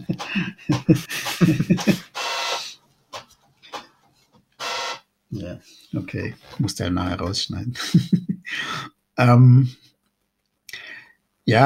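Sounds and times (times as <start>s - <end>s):
laughter: 0.0s - 2.1s, 7.8s - 8.4s
speech: 0.1s - 2.0s, 6.2s - 9.8s, 11.5s - 11.6s
home printer printing: 0.1s - 2.8s.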